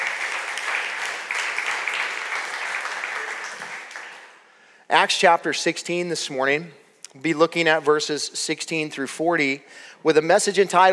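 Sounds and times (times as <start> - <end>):
audience applause: 0.0 - 4.4
speech: 4.9 - 10.9.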